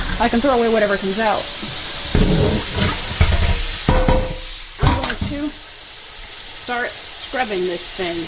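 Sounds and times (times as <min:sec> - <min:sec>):
tap water running into sink: 0:00.0 - 0:06.3
speech: 0:00.2 - 0:02.8, 0:06.7 - 0:08.2.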